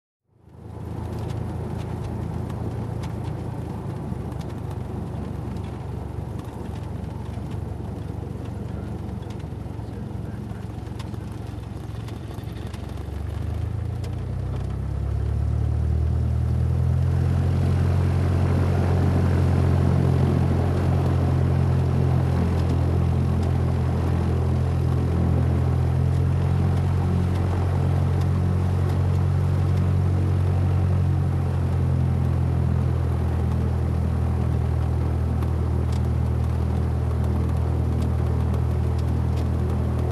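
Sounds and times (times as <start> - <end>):
light aircraft being checked in hangars: 0.3 - 40.1.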